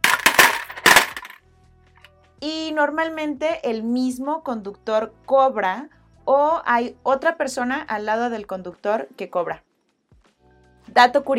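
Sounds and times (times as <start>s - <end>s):
coins clattering: 0.0s - 1.4s
speech: 2.4s - 9.7s, 10.9s - 11.3s.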